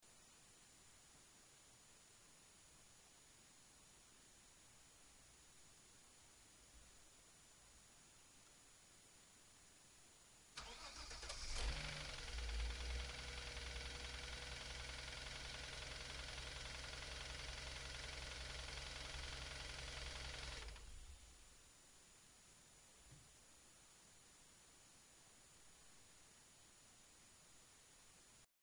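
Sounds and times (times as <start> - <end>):
engine: 10.6 - 21.1.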